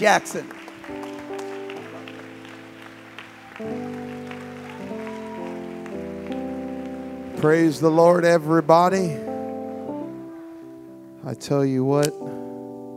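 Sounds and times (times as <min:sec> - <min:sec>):
speech: 0:00.0 - 0:00.6, 0:03.6 - 0:03.9, 0:07.4 - 0:09.3, 0:11.2 - 0:12.4
church congregation applauding: 0:00.0 - 0:09.7
sustained keyboard chords: 0:00.0 - 0:12.9.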